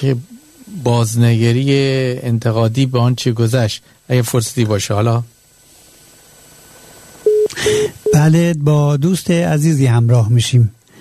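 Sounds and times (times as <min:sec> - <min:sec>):
speech: 0:00.0 - 0:05.4, 0:08.2 - 0:10.8
telephone busy signal beep after a caller hung up: 0:07.2 - 0:08.3.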